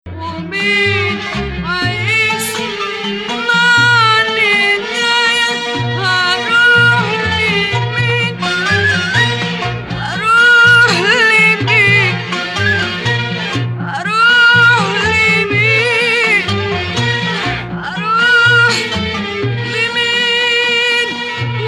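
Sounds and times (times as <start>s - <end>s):
maqam Rast music: 1.1s - 21.6s.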